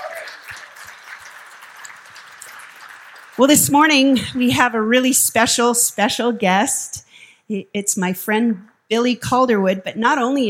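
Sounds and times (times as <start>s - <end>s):
audience applause: 0.0s - 4.2s
speech: 3.4s - 10.4s.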